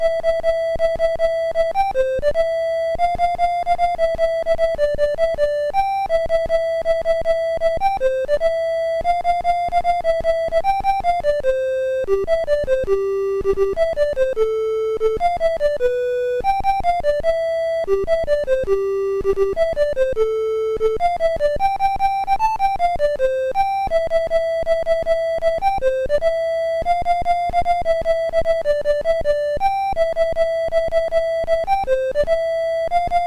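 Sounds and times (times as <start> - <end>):
chiptune Christmas melody on a MOS6581R2 SID chip: 0.2 - 33.2.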